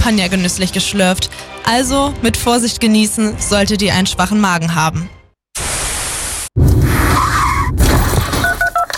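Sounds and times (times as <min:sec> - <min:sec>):
speech: 0:00.0 - 0:05.2
car crash bursts: 0:06.6 - 0:08.8
tyres screeching: 0:06.9 - 0:08.2.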